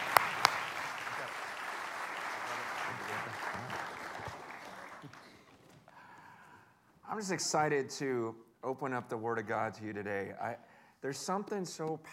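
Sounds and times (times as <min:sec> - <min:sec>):
audience applause welcoming a speaker after a prayer: 0:00.0 - 0:05.8
speech: 0:07.2 - 0:12.1.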